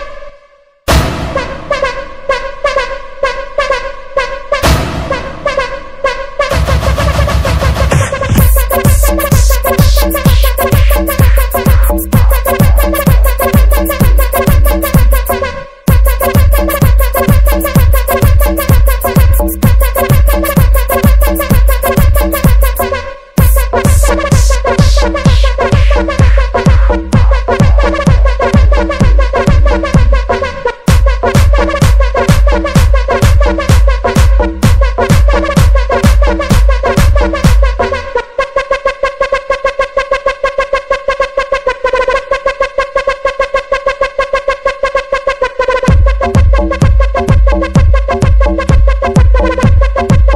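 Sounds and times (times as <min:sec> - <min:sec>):
Azeri bass music guaracha remix: 0:00.9 - 0:50.3.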